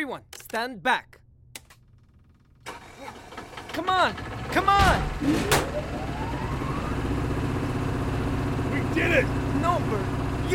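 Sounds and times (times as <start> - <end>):
speech: 0.0 - 1.2, 3.8 - 6.2, 9.0 - 10.5
generator engine starting up after being choked: 2.6 - 9.2.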